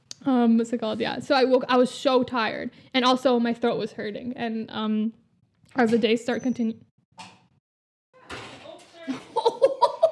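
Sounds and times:
speech: 0:00.2 - 0:07.3
door being closed: 0:08.2 - 0:09.1
laughter: 0:09.1 - 0:10.1.

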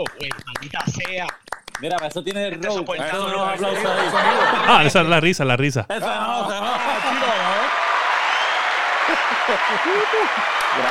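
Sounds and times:
applause: 0:00.0 - 0:02.3, 0:06.8 - 0:10.8
speech: 0:00.0 - 0:07.6, 0:09.5 - 0:10.8
laughter: 0:02.5 - 0:05.2, 0:05.9 - 0:07.9, 0:08.8 - 0:10.8.

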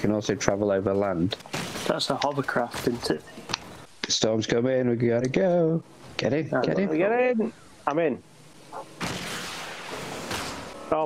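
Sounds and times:
speech: 0:00.0 - 0:03.5, 0:04.1 - 0:08.9
video game missile firing: 0:09.0 - 0:10.8.

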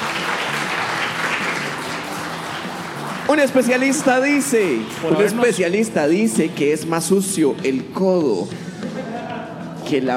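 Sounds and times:
applause: 0:00.0 - 0:05.9
speech: 0:03.3 - 0:08.7, 0:09.9 - 0:10.1
laughter: 0:08.6 - 0:10.0.

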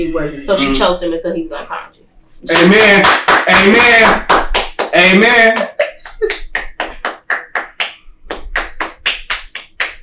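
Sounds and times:
speech: 0:00.0 - 0:01.8, 0:02.4 - 0:04.3, 0:05.0 - 0:05.6
hands clapping: 0:02.5 - 0:10.0.

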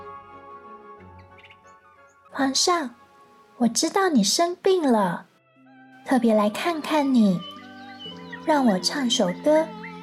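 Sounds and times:
nightingale chirping: 0:01.1 - 0:02.5, 0:06.7 - 0:10.0
speech: 0:02.4 - 0:03.0, 0:03.6 - 0:05.3, 0:06.1 - 0:07.5, 0:08.5 - 0:09.8.

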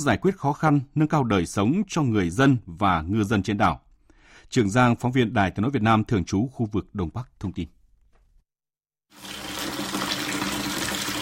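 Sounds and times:
speech: 0:00.0 - 0:03.8, 0:04.5 - 0:07.8
water gushing from a storage tank tap: 0:09.1 - 0:11.2.

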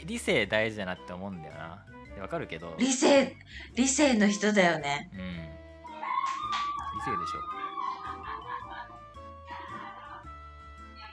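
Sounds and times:
speech: 0:00.1 - 0:05.6, 0:07.0 - 0:07.7
woman shrieking in neighboring karaoke room: 0:05.9 - 0:08.8
laughter: 0:06.0 - 0:10.3.

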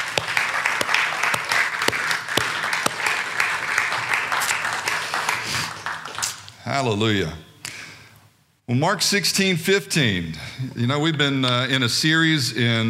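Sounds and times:
crowd applauding: 0:00.0 - 0:06.5
speech: 0:06.8 - 0:07.5, 0:08.7 - 0:12.8.

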